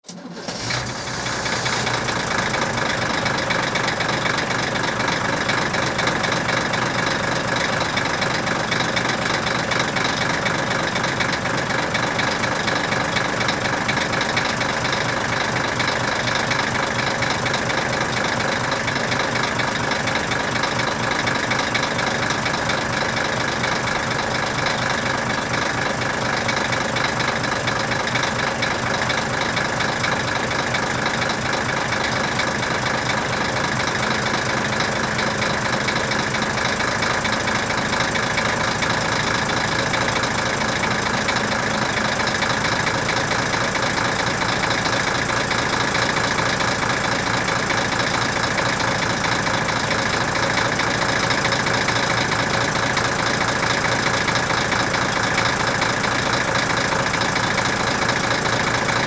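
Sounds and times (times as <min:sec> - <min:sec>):
diesel truck starting and stopping: 0:00.0 - 0:59.0.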